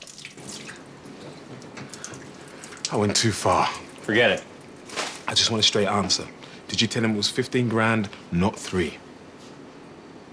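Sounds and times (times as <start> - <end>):
tap water running in a sink: 0.0 - 4.9
speech: 2.9 - 4.5, 5.3 - 9.0.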